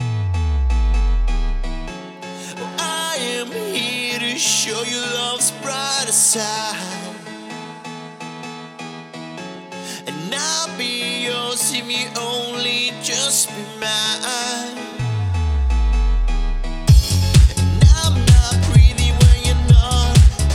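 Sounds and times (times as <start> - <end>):
house music grooves: 0.0 - 2.0, 15.0 - 20.5.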